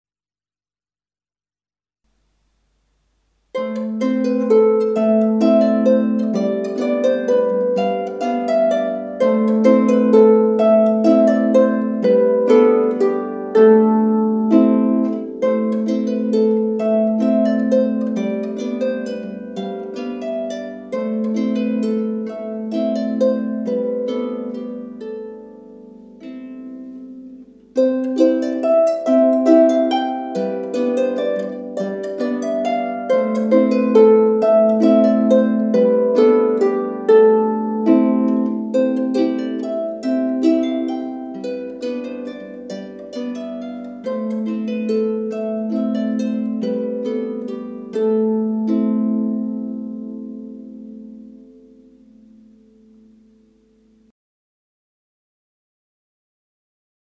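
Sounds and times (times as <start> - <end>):
waltz music: 3.6 - 53.6.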